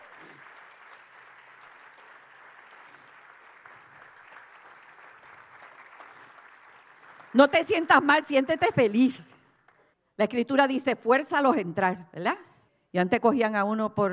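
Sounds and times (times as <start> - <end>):
audience applause: 0.0 - 8.9
speech: 7.3 - 9.3, 10.2 - 14.1.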